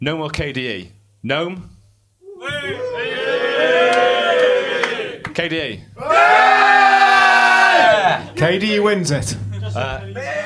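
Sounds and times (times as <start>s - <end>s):
speech: 0.0s - 1.8s, 2.4s - 3.1s, 5.4s - 6.8s, 7.9s - 10.4s
audience cheering: 2.2s - 5.3s, 6.0s - 8.4s, 10.0s - 10.4s.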